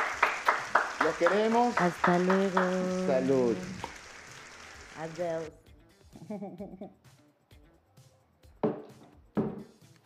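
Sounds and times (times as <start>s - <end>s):
hand clapping applause: 0.0s - 4.8s
speech: 1.0s - 3.9s, 5.0s - 5.6s, 6.2s - 7.0s
laughter: 6.2s - 6.9s.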